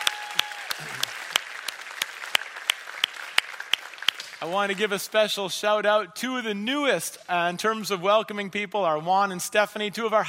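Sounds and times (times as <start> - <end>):
church audience applauding the First Impressions team: 0.0 - 5.3
speech: 4.4 - 10.2.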